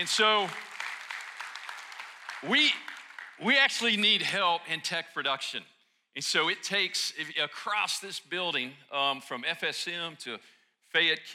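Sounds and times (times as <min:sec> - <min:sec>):
speech: 0:00.0 - 0:00.7, 0:02.4 - 0:11.3
audience clapping: 0:00.0 - 0:04.1.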